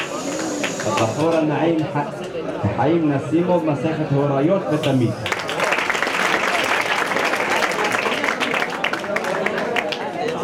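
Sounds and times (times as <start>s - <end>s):
crowd applauding: 0.0s - 1.3s, 4.8s - 10.4s
faint murmur of voices: 0.0s - 10.4s
speech: 0.8s - 5.3s.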